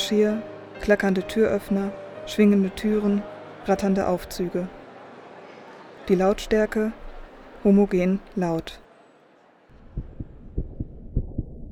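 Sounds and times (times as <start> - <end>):
speech: 0.1 - 4.8, 6.1 - 7.0, 7.6 - 8.8
heartbeat: 9.8 - 11.7.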